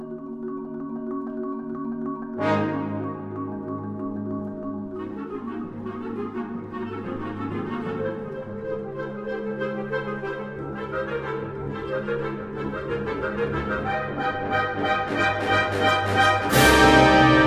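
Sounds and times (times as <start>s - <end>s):
percussion concerto: 0.3s - 17.4s.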